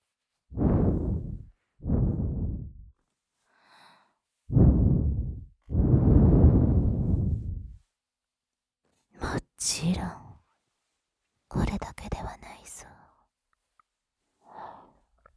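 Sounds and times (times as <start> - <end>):
person blowing warm breaths toward the listener: 0.6 - 2.7, 4.5 - 7.8.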